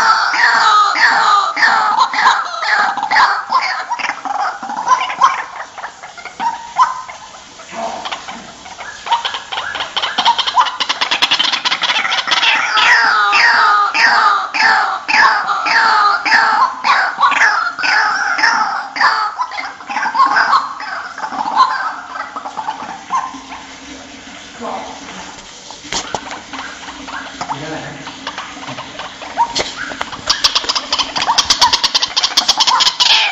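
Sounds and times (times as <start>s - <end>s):
ruak-ruak bird calling: 0.0s - 23.7s, 25.9s - 33.3s.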